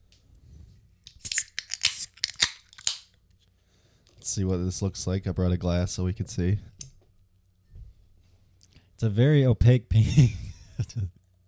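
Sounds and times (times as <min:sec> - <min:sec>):
drink container being cracked open: 0:01.1 - 0:03.2
speech: 0:04.3 - 0:06.7, 0:09.0 - 0:11.2.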